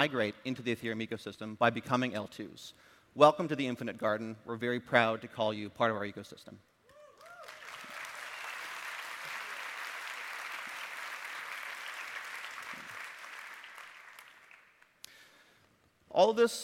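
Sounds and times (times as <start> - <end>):
speech: 0.0 - 6.7, 16.2 - 16.6
audience applause: 7.2 - 14.9.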